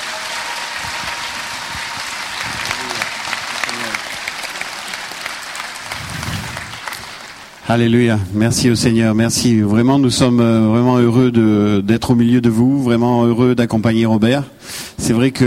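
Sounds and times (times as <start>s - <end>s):
audience applause: 0.0s - 7.6s
speech: 7.7s - 15.4s.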